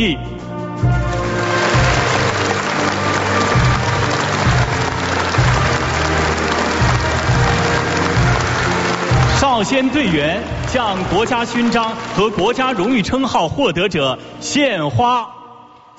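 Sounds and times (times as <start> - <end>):
speech: 0.0 - 1.0, 9.4 - 15.4
warm applause: 1.0 - 13.1.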